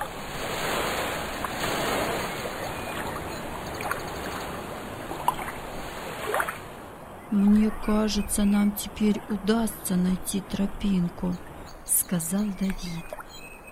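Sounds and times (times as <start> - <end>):
sea waves breaking on coastal rocks: 0.0 - 7.2
speech: 7.4 - 13.2.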